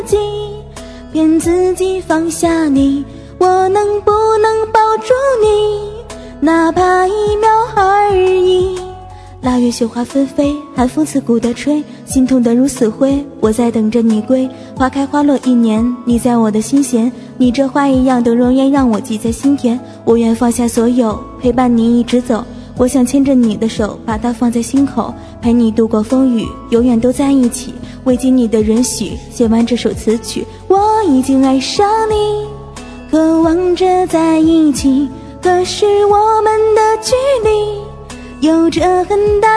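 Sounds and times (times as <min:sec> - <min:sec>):
person singing a cover song: 0:00.0 - 0:32.5, 0:33.1 - 0:39.5.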